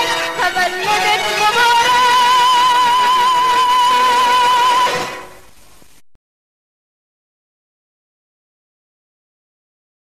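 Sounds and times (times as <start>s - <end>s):
birthday music: 0.0s - 5.4s.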